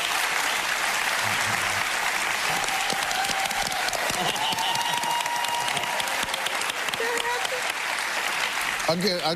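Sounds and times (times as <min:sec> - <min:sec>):
audience applause: 0:00.0 - 0:09.3.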